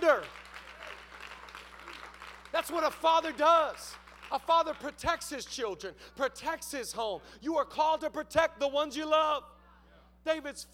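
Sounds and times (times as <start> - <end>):
crowd clapping: 0.0 - 5.4
low steady hum: 0.0 - 10.7
speech: 2.6 - 9.5, 10.2 - 10.7.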